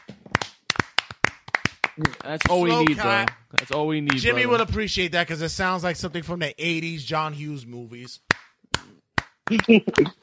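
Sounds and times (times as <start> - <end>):
slow clapping: 0.0 - 4.4, 8.0 - 10.2
speech: 2.0 - 8.3, 9.5 - 10.2.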